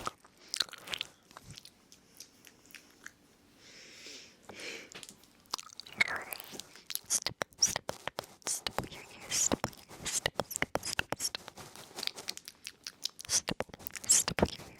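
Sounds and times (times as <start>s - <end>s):
ear noms crackly clicks: 0.0s - 3.2s, 4.9s - 14.7s
soft hissing brush swish: 7.1s - 12.4s, 13.3s - 14.7s.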